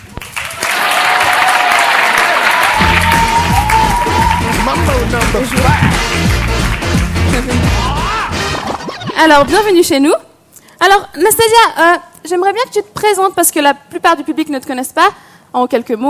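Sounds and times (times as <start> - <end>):
audience applause: 0.0 - 8.9
upbeat music with a rhythmic bass line: 2.8 - 9.7
speech: 5.1 - 6.4, 9.2 - 16.0.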